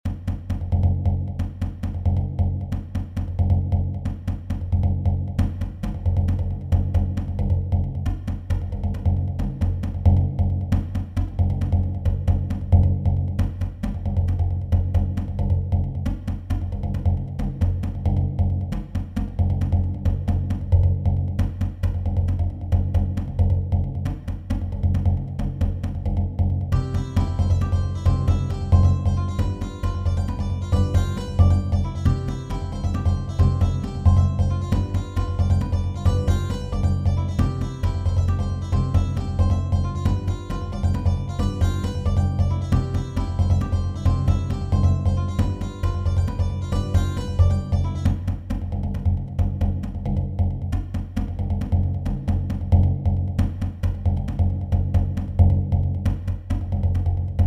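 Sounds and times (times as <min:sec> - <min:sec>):
rhythmic study for jongo: 0:00.0 - 0:57.4.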